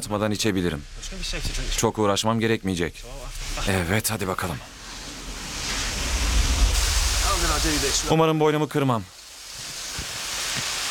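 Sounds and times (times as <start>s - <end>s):
speech: 0.0s - 4.7s, 7.5s - 9.2s
spring water flowing over stones: 4.7s - 8.2s, 8.9s - 10.8s.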